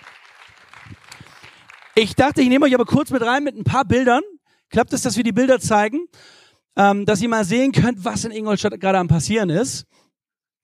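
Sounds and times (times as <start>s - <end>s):
audience brief applause: 0.0s - 2.0s
speech: 2.0s - 10.6s.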